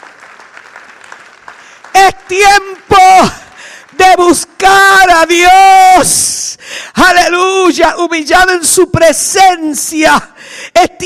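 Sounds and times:
audience applauding: 0:00.0 - 0:04.6
speech: 0:02.0 - 0:03.4, 0:04.1 - 0:11.0.

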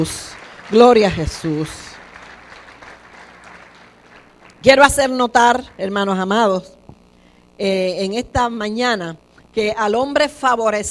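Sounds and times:
speech: 0:00.0 - 0:01.9, 0:04.6 - 0:06.8, 0:07.6 - 0:10.9
crowd clapping: 0:00.0 - 0:05.8.

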